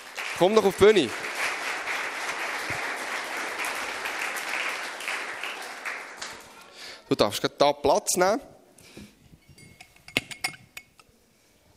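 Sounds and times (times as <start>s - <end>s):
audience applause welcoming guest on stage: 0.0s - 7.0s
speech: 0.4s - 1.2s, 7.1s - 9.1s.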